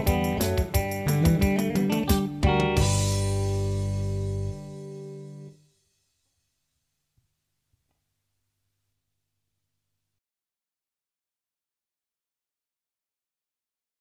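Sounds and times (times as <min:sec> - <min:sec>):
country guitar picking: 0:00.0 - 0:05.5.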